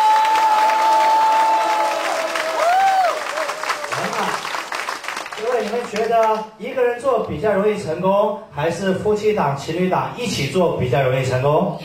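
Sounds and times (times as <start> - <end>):
rising-falling whoop: 0.0 - 4.0
audience applause: 0.0 - 6.4
speech: 5.9 - 11.8.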